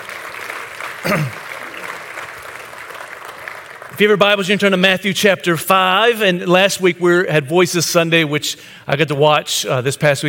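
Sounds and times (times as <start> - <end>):
audience applause: 0.0 - 4.4
speech: 1.0 - 1.5, 4.0 - 10.2.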